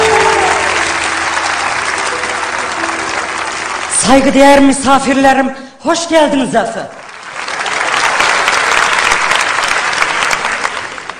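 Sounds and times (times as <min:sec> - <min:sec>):
audience applause: 0:00.0 - 0:04.8, 0:07.0 - 0:11.1
speech: 0:04.1 - 0:07.0.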